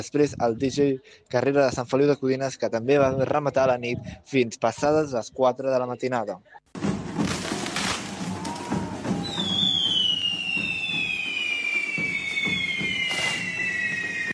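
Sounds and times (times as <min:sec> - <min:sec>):
speech: 0:00.0 - 0:06.8
fireworks and firecrackers crackling at a correfoc by the Diables de Castellterçol: 0:06.8 - 0:14.3
high piercing firework whistle: 0:09.2 - 0:14.3.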